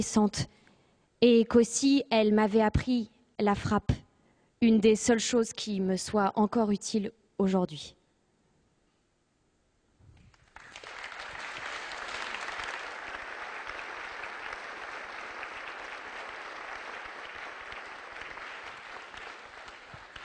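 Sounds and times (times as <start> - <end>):
speech: 0.0 - 0.6, 1.2 - 4.0, 4.6 - 8.0
audience applause: 10.3 - 20.2.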